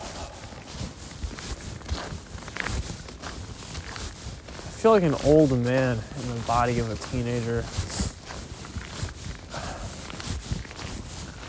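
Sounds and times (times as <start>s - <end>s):
constant rustling hissy background: 0.0s - 11.4s
footsteps of someone out on a walk: 0.0s - 11.4s
speech: 4.8s - 8.0s.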